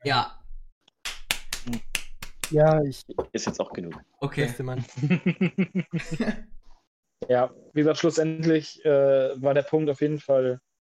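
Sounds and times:
speech: 0:00.0 - 0:00.4, 0:02.5 - 0:06.5, 0:07.2 - 0:10.7
group clapping: 0:01.0 - 0:04.1
laughter: 0:04.9 - 0:06.5.

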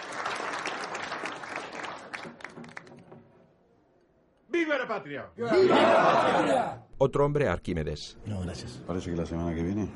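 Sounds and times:
guests applauding at a formal gathering during a toast: 0:00.0 - 0:03.2
speech: 0:04.8 - 0:09.9.

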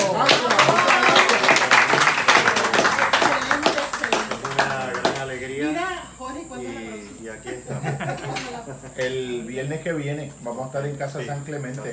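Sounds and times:
laughter: 0:00.0 - 0:05.4, 0:07.3 - 0:09.1
crowd applauding: 0:00.0 - 0:05.5
voices calling and chattering: 0:00.0 - 0:11.9
speech: 0:08.7 - 0:11.9.

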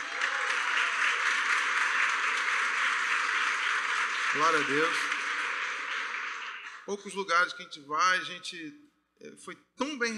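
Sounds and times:
audience applauding: 0:00.0 - 0:07.2
speech: 0:04.4 - 0:05.1, 0:06.9 - 0:10.1.

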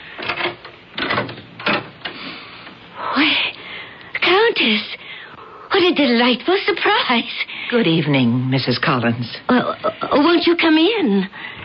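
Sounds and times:
door being opened: 0:00.2 - 0:02.8
speech: 0:04.6 - 0:05.0, 0:05.8 - 0:11.6.

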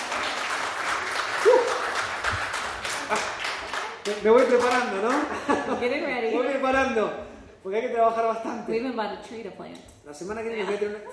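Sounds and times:
audience applause: 0:00.0 - 0:05.2
speech: 0:03.1 - 0:03.4, 0:04.1 - 0:11.1.

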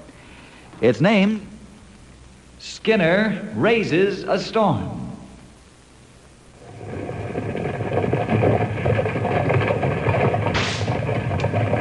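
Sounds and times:
speech: 0:00.8 - 0:01.5, 0:02.6 - 0:05.0
mule team pulling heavy wagons: 0:06.6 - 0:11.7.

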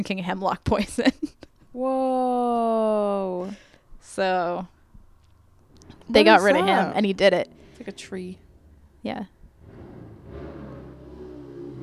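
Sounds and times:
speech: 0:00.0 - 0:04.7, 0:06.1 - 0:08.4, 0:09.0 - 0:09.4
motorcycle: 0:07.4 - 0:08.9, 0:09.5 - 0:11.8.

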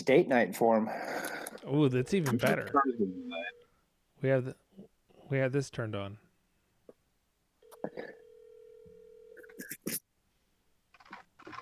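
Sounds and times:
speech: 0:00.0 - 0:03.6, 0:04.2 - 0:06.2, 0:07.8 - 0:08.2
ringback tone of an outgoing phone call: 0:02.5 - 0:03.6, 0:07.6 - 0:09.5.

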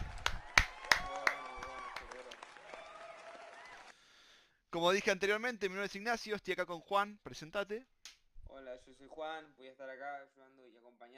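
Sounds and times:
applause: 0:00.0 - 0:04.2
speech: 0:04.8 - 0:08.0, 0:08.6 - 0:11.1.

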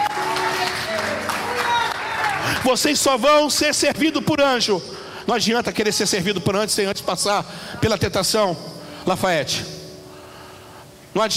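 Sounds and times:
audience applause in church: 0:00.0 - 0:03.9
speech: 0:02.6 - 0:09.8, 0:11.2 - 0:11.3.

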